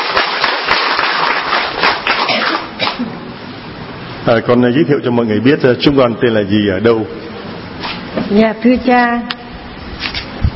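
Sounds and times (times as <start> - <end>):
audience applause: 0.0 - 2.7
speech: 4.3 - 7.2, 8.3 - 9.3.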